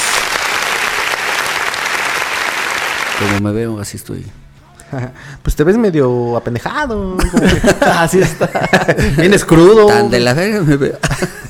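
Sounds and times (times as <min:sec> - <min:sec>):
applause: 0:00.0 - 0:03.4
speech: 0:03.2 - 0:11.4
laughter: 0:07.2 - 0:09.5, 0:11.0 - 0:11.4.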